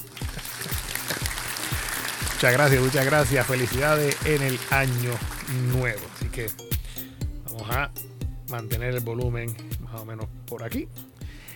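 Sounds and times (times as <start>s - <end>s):
applause: 0.0s - 6.5s
speech: 2.4s - 6.7s, 7.7s - 11.1s.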